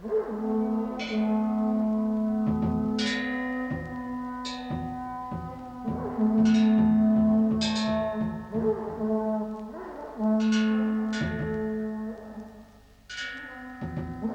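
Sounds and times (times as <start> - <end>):
Japanese trumpet shell: 0.0 - 14.3
Japanese taiko drum: 2.2 - 9.1, 11.2 - 11.6, 13.8 - 14.3.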